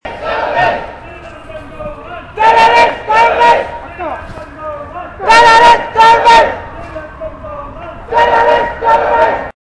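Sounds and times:
Tamil Tiger protest crowd: 0:00.0 - 0:09.6.

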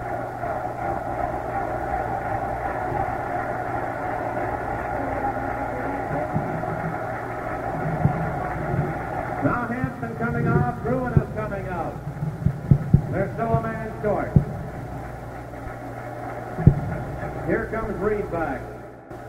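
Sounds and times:
hockey arena crowd roaring: 0:00.0 - 0:19.2.

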